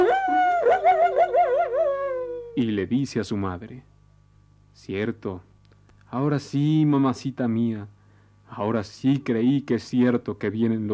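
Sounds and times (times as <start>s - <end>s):
human voice imitating a coyote howl: 0.0s - 2.7s
speech: 2.6s - 3.9s, 4.8s - 5.5s, 6.1s - 10.9s.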